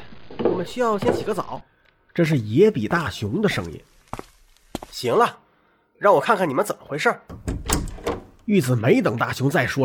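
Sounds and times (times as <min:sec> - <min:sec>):
speech: 0:00.6 - 0:04.3, 0:04.9 - 0:05.4, 0:06.0 - 0:07.4, 0:08.5 - 0:09.8
bedroom door pulled open with rattling knocks: 0:07.3 - 0:08.5.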